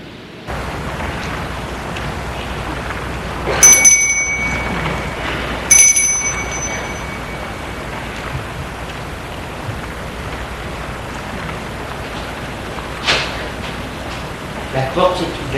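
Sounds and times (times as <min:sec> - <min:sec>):
hiss: 0:00.0 - 0:15.5
doorbell ringing: 0:03.4 - 0:08.6.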